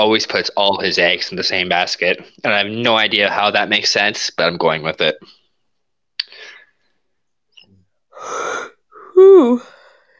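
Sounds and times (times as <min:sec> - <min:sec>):
speech: 0:00.0 - 0:05.4, 0:09.3 - 0:09.7
person yawning: 0:08.2 - 0:10.0.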